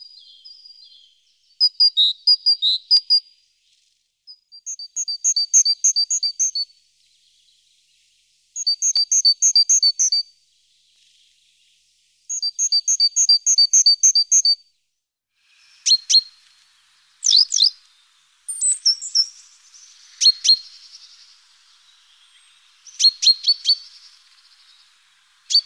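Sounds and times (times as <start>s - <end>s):
Great tit giving harsh buzzy churring calls: 17.2s - 17.8s, 18.5s - 24.8s.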